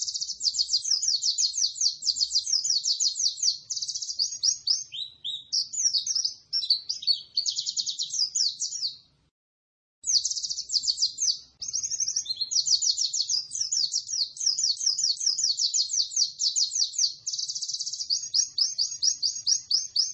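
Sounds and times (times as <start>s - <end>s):
white-eye twittering song: 0.0s - 9.1s, 10.0s - 20.1s.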